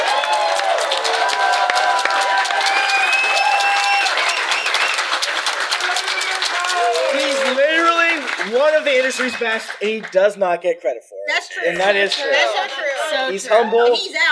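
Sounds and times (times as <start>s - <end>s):
cheering: 0.0s - 9.9s
convention audience applause at Geeklycon 2023: 0.0s - 10.4s
shrill gliding whistles: 2.7s - 5.1s
speech: 9.0s - 14.3s.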